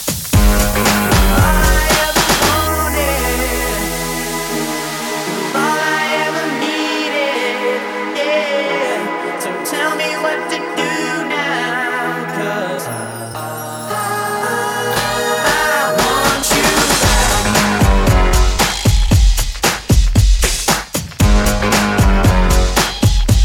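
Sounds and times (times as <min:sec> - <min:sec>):
music intro at 115 BPM: 0:00.3 - 0:20.4, 0:21.2 - 0:23.4.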